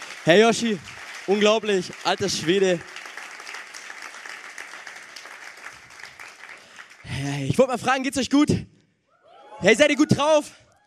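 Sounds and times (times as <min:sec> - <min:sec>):
audience applause: 0:00.0 - 0:07.4
speech: 0:00.2 - 0:03.0, 0:07.6 - 0:08.7, 0:09.6 - 0:10.6.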